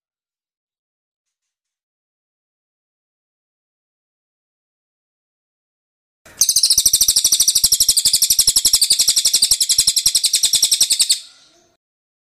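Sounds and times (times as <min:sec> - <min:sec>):
bird trill: 0:06.3 - 0:11.8.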